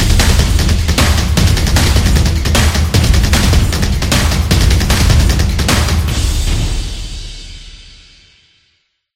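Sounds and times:
stomps: 0.0 - 6.2
drums: 0.0 - 8.8
hand claps: 0.2 - 6.1.

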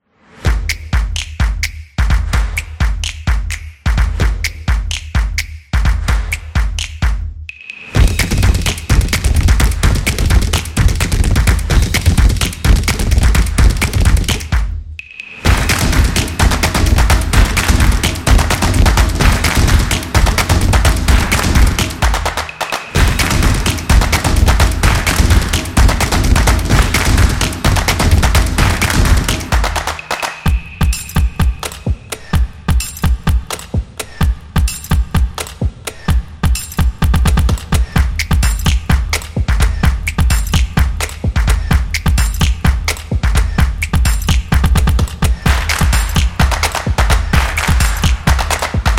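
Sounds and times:
beat music: 0.5 - 48.9.

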